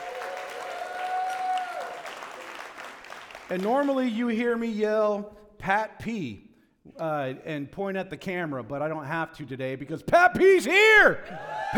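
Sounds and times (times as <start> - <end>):
high whoop or whistle: 0.0 - 2.0
audience clapping and cheering: 0.0 - 4.1
speech: 3.5 - 11.6.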